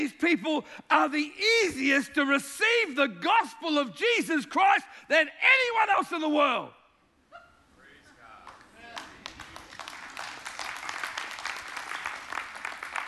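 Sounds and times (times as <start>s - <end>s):
speech: 0.0s - 6.8s
audience clapping: 8.4s - 13.0s.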